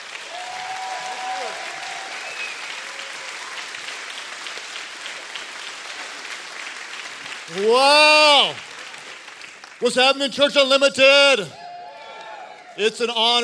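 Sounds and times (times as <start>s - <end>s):
people cheering: 0.0s - 4.6s, 7.5s - 8.8s, 9.9s - 13.4s
church audience applause welcoming Pastor Craig Groeschel: 0.0s - 10.3s, 11.8s - 12.8s
speech: 7.5s - 8.7s, 9.8s - 11.6s, 12.8s - 13.4s.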